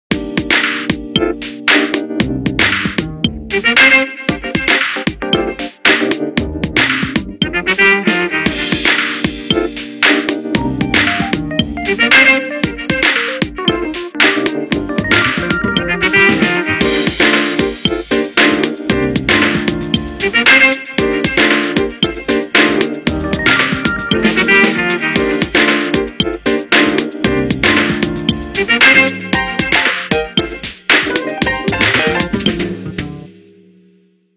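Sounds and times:
jazz ringtone: 0:01.0 - 0:01.8, 0:02.4 - 0:33.4.

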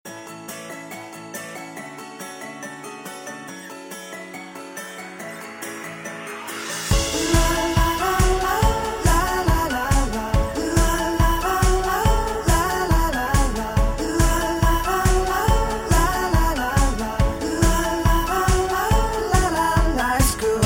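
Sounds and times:
tune: 0:04.2 - 0:20.6.

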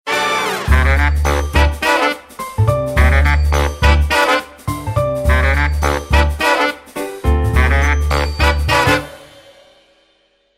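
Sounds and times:
ringtone: 0:00.7 - 0:01.9, 0:02.6 - 0:06.7, 0:07.3 - 0:09.2.

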